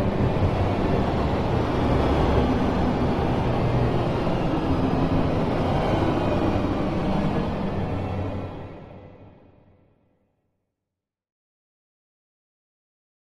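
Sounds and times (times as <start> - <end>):
frantic eerie crazy horror strings music: 0.0 - 9.6.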